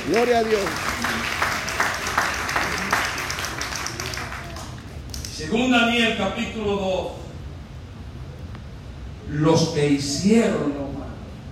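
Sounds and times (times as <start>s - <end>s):
audience applause: 0.0s - 5.0s
speech: 0.1s - 0.9s, 5.4s - 7.2s, 9.3s - 11.1s.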